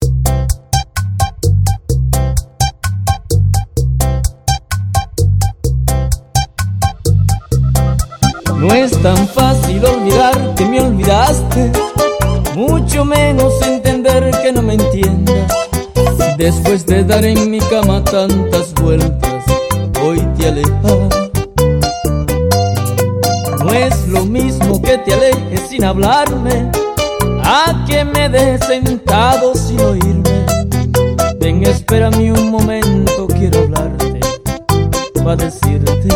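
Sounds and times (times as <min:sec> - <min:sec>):
bachata intro: 0:00.0 - 0:36.1.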